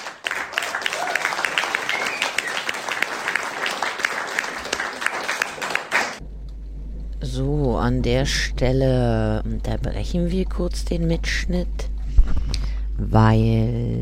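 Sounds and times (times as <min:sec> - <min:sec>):
audience applause: 0:00.0 - 0:06.2
speech: 0:07.4 - 0:11.9, 0:13.0 - 0:13.9.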